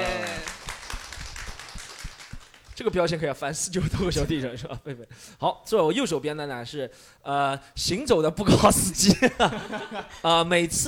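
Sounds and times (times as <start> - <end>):
applause: 0.0 - 3.0
speech: 2.8 - 10.8.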